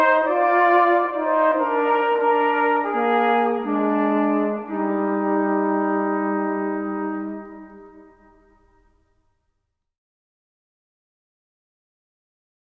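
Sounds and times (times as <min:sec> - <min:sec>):
wind instrument duo: 0:00.0 - 0:09.0.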